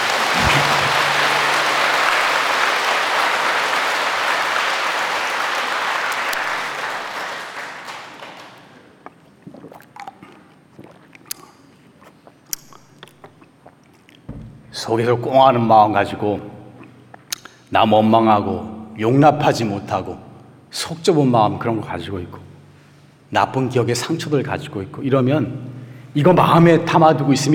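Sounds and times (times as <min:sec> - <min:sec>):
audience applause: 0:00.0 - 0:08.8
speech: 0:14.9 - 0:16.5, 0:17.7 - 0:22.5, 0:23.3 - 0:27.5.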